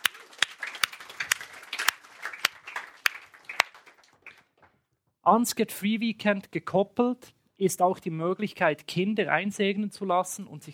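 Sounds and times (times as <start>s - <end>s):
audience applause: 0.0s - 4.6s
speech: 5.2s - 10.7s.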